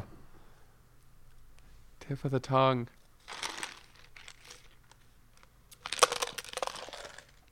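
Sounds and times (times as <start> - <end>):
speech: 2.1 - 3.0
ice cubes swished around in a glass: 3.3 - 4.7, 5.8 - 7.5.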